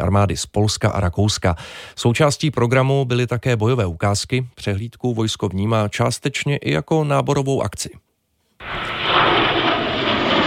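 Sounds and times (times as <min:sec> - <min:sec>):
speech: 0:00.0 - 0:09.3
JAS-39 Gripen fighter jets roaring overhead: 0:08.6 - 0:10.4.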